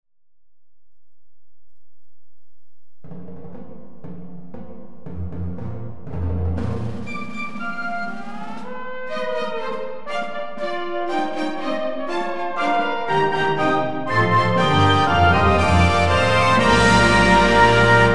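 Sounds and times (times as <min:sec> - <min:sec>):
fanfare: 0:07.1 - 0:18.1.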